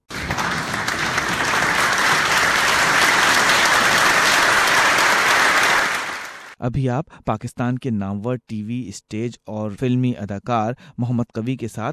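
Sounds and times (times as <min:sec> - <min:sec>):
audience applause at the close of a stage show in Sydney: 0:00.0 - 0:06.6
speech: 0:06.6 - 0:11.9.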